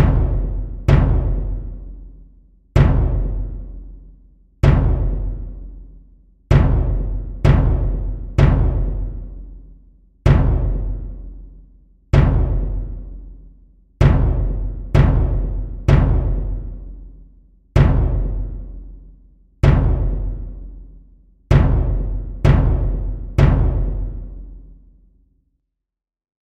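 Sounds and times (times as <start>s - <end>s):
bombo bass drum: 0.0s - 2.2s, 2.8s - 4.0s, 4.6s - 5.9s, 6.5s - 9.6s, 10.2s - 13.4s, 14.0s - 17.2s, 17.8s - 19.0s, 19.6s - 24.7s.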